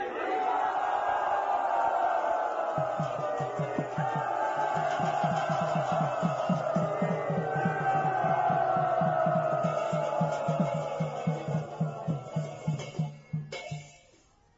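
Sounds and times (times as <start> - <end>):
crowd cheering in welcome of a guru: 0.0 - 13.5
rhythmic pulse: 2.6 - 13.6.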